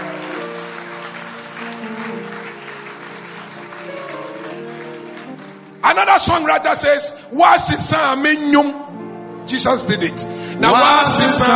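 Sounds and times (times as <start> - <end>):
audience clapping: 0.0 - 6.9
speech: 5.9 - 8.9, 9.5 - 11.5.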